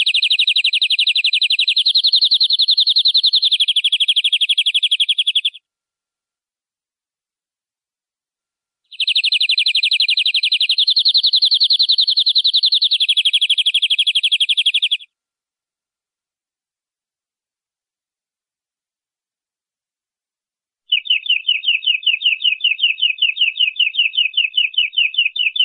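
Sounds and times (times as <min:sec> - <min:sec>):
canary singing: 0:00.0 - 0:05.6, 0:08.9 - 0:15.1, 0:20.9 - 0:25.6.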